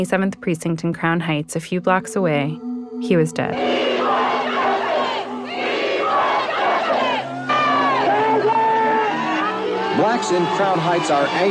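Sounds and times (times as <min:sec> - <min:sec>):
speech: 0:00.0 - 0:04.2, 0:10.0 - 0:11.4
protesters shouting: 0:03.6 - 0:11.4.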